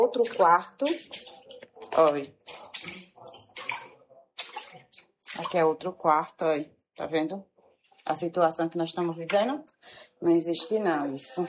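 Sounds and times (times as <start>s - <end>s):
speech: 0.0s - 1.3s, 2.0s - 3.1s, 5.4s - 7.5s, 8.1s - 11.4s
water rushing out of a flooded bathroom: 0.0s - 5.6s.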